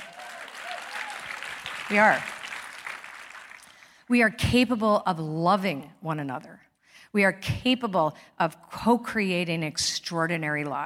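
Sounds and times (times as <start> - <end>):
crowd clapping: 0.0 - 4.0
speech: 1.9 - 2.3, 4.1 - 10.8.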